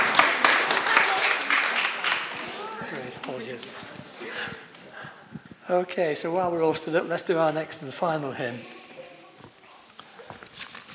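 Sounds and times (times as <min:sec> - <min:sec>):
church congregation applauding: 0:00.0 - 0:04.7
speech: 0:03.6 - 0:08.8.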